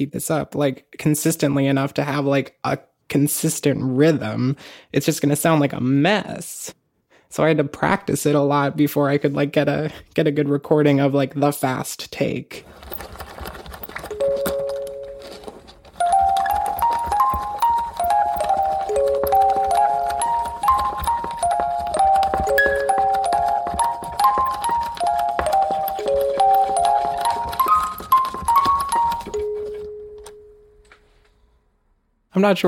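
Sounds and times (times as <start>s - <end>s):
speech: 0.0s - 13.2s, 32.4s - 32.6s
music box playing a melody: 14.1s - 31.0s.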